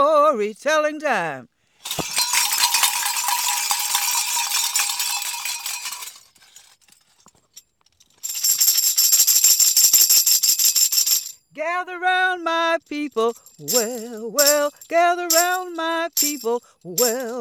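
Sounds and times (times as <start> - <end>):
speech: 0.0 - 1.6, 11.6 - 17.4
bells ringing: 1.9 - 6.2.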